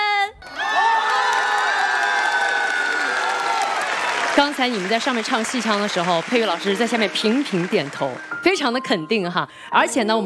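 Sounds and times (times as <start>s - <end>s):
audience applause: 0.5s - 8.4s
speech: 4.4s - 10.2s.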